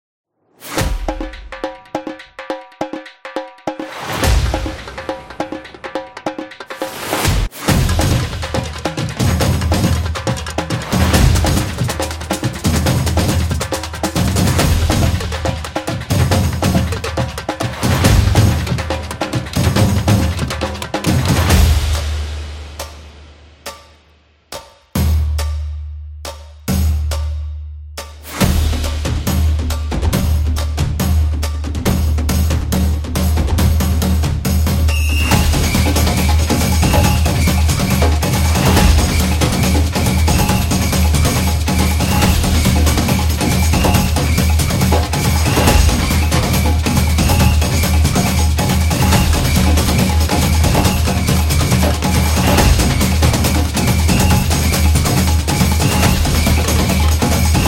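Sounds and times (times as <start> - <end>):
Brazil drums: 0.4 - 57.6.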